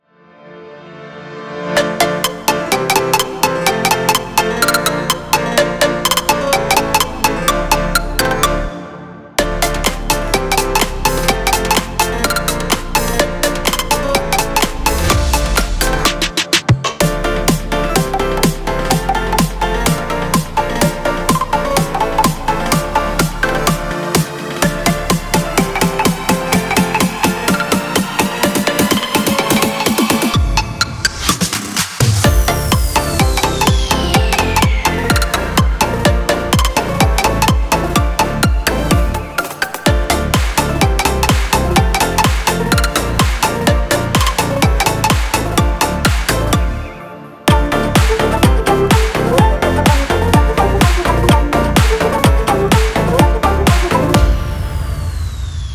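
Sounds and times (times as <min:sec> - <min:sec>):
progressive house music: 0:01.3 - 0:55.7.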